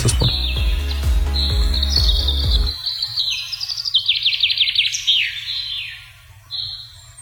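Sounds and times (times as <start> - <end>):
low rumble: 0.0 - 2.7
birdsong in the Black Forest: 0.0 - 7.2.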